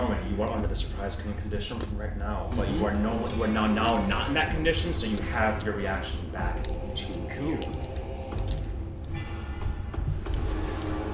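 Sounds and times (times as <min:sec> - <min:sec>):
rhythmic creaking: 0:00.0 - 0:11.1
speech: 0:00.2 - 0:07.9.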